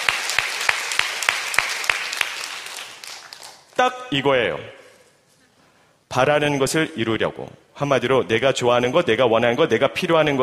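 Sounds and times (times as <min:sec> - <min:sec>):
audience applause: 0:00.0 - 0:03.7
speech: 0:03.8 - 0:04.8, 0:06.1 - 0:10.4.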